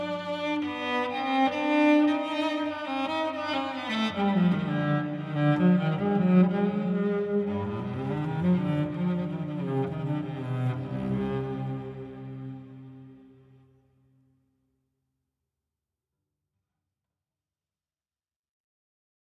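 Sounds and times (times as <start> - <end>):
solo cello playing a bourree: 0.0 - 13.6.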